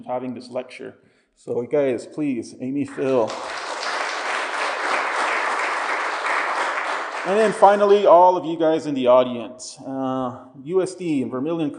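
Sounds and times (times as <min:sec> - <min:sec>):
speech: 0:00.0 - 0:03.7, 0:07.2 - 0:11.7
audience applause: 0:02.9 - 0:08.2.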